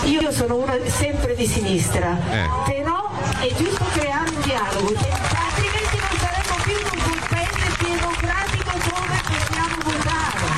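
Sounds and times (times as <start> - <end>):
murmur of crowd voices: 0.0 - 10.5
speech: 0.2 - 5.4
audience applauding: 3.7 - 10.5.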